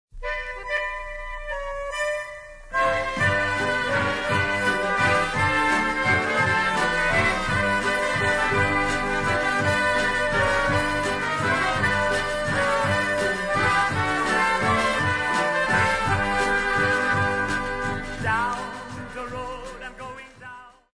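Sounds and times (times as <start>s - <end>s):
waltz music: 0.2s - 20.2s.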